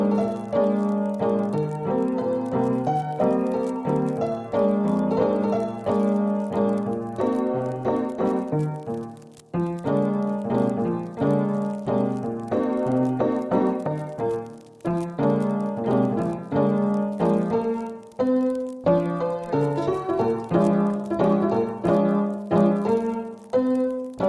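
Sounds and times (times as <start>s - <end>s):
music at 90 BPM: 0.0s - 24.2s.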